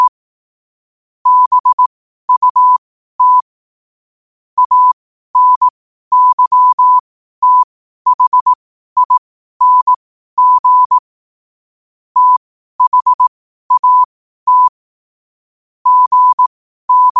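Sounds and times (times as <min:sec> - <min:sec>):
morse code at 5 wpm: 0:01.3 - 0:03.5, 0:04.6 - 0:11.0, 0:12.2 - 0:14.7, 0:15.9 - 0:17.1.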